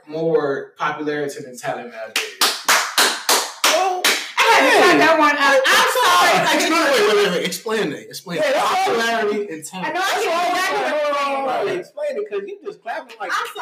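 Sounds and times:
speech: 0.1s - 2.8s, 4.8s - 13.6s
hands clapping: 2.1s - 5.0s
laughter: 5.8s - 13.6s.

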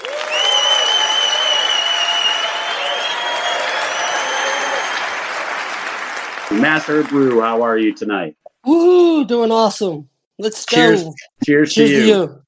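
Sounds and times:
long whistle-like tones: 0.0s - 5.2s
audience applause: 0.0s - 8.0s
speech: 6.6s - 12.4s.

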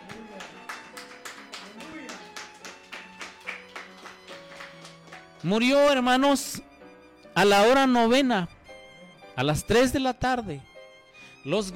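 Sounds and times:
audience applause: 0.0s - 5.5s
speech: 5.4s - 6.7s, 7.4s - 8.6s, 9.4s - 10.7s, 11.4s - 11.7s.

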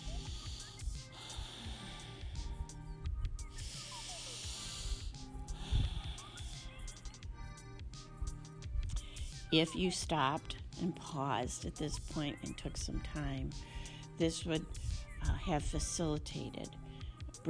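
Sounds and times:
slow deep breathing through the nose: 0.0s - 7.1s, 8.4s - 9.5s, 13.6s - 15.1s
faint tonal hum: 0.0s - 17.2s
speech: 9.5s - 16.8s.

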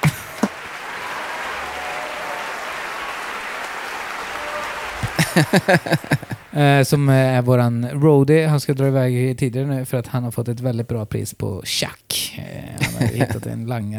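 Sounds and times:
laughter: 0.0s - 1.3s, 5.0s - 6.6s, 12.8s - 13.6s
big round of applause: 0.0s - 6.6s
speech: 5.4s - 13.9s.

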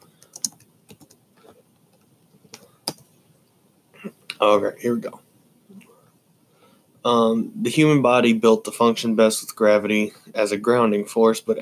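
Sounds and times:
typing on a computer keyboard: 0.2s - 1.2s
speech: 4.0s - 5.2s, 7.0s - 11.6s.

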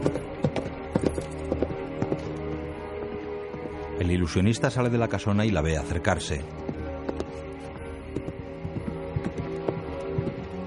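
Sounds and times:
horse hooves galloping through woods at night: 0.0s - 3.9s, 6.5s - 10.6s
speech: 4.2s - 6.7s.

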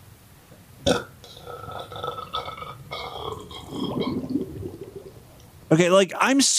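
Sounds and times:
stomach bubbling after pumping up guts: 0.6s - 5.8s
speech: 5.7s - 6.5s.

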